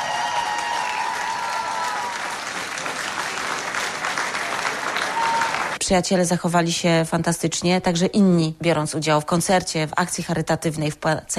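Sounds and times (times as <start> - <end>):
audience applause: 0.0 - 5.8
speech: 5.9 - 11.3.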